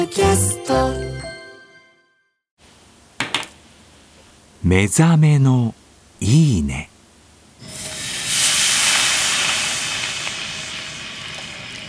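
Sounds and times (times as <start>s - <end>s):
speech: 0.0s - 1.2s, 4.6s - 6.9s
sukiyaki simmering and sizzling in a pan: 7.6s - 11.8s.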